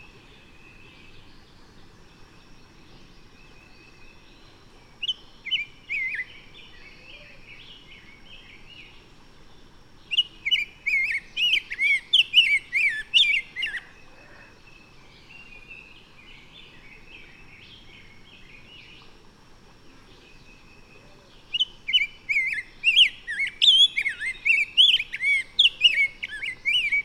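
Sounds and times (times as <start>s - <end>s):
bird song: 0.0s - 27.0s.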